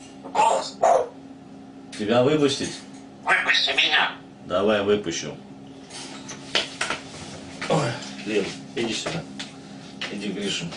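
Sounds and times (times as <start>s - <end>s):
faint hum: 0.0s - 10.7s
grey parrot voicing clipped bark-like syllables: 0.2s - 1.2s, 3.2s - 4.2s
speech: 2.0s - 5.5s, 7.7s - 9.3s, 10.1s - 10.7s.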